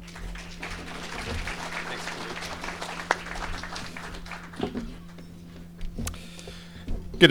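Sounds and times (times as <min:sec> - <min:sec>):
laughter: 0:00.0 - 0:05.7
audience applauding to welcome a guest speaker: 0:00.0 - 0:06.7
low hum: 0:00.0 - 0:07.2.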